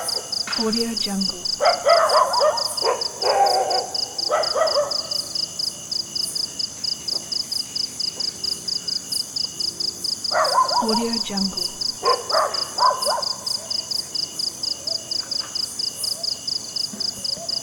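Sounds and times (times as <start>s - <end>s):
cricket chirping: 0.0s - 17.6s
speech: 0.6s - 2.6s, 10.9s - 11.8s
animal calls: 1.2s - 5.4s, 10.3s - 13.9s.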